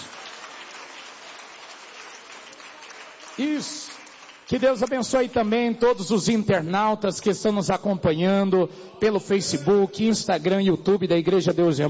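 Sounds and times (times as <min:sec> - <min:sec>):
church audience clapping: 0:00.0 - 0:06.4
speech: 0:03.4 - 0:11.8.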